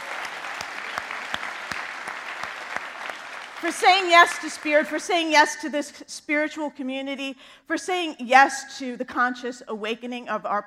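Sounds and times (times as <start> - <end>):
audience applause: 0.0 - 4.7
speech: 3.6 - 10.6.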